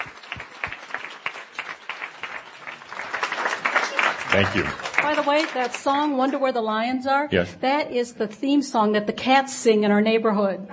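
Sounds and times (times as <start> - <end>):
audience applause: 0.0 - 6.2
speech: 4.3 - 10.7.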